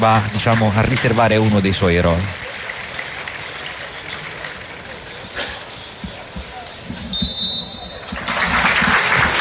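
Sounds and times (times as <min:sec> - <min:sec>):
speech: 0:00.0 - 0:02.4
large stadium crowd applauding in tribute: 0:00.0 - 0:09.3
short sharp whistle blast: 0:07.1 - 0:08.0.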